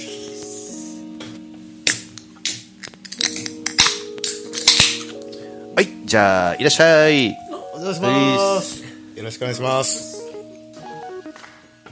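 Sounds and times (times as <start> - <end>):
beer cans cracked open for a toast: 1.9 - 5.2
speech: 5.8 - 10.1.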